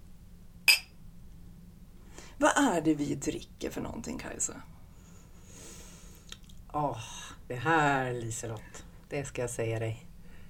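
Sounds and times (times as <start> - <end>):
low hum: 0.0 - 10.4
glasses clinking in a toast: 0.7 - 1.0
speech: 2.4 - 4.8, 6.8 - 10.1.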